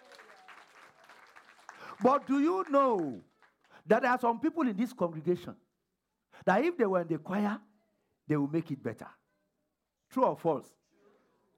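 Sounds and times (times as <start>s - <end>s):
audience clapping for the choir: 0.0s - 4.0s
speech: 2.0s - 3.3s, 3.9s - 5.6s, 6.4s - 7.7s, 8.3s - 9.2s, 10.1s - 10.8s.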